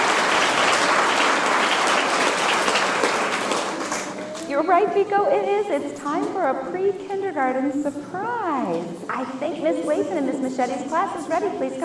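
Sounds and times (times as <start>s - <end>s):
audience applause: 0.0s - 4.5s
speech: 4.6s - 11.8s.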